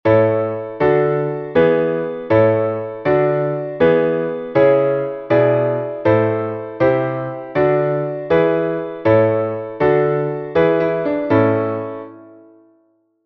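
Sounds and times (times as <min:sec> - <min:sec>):
piano: 0:00.0 - 0:13.2.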